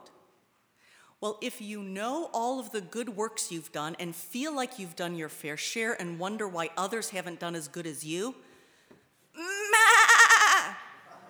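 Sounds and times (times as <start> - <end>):
speech: 1.2 - 8.5
person's voice imitating a goat bleating: 9.4 - 11.0.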